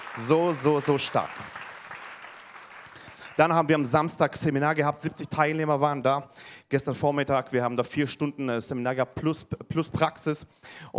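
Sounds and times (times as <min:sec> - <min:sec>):
audience applause: 0:00.0 - 0:04.1
speech: 0:00.2 - 0:01.6, 0:03.4 - 0:10.9.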